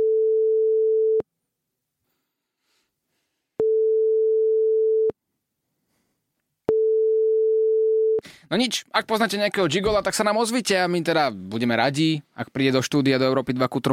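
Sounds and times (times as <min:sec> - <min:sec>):
telephone busy signal: 0:00.0 - 0:01.2, 0:03.6 - 0:05.1, 0:06.7 - 0:08.2
speech: 0:08.5 - 0:13.9.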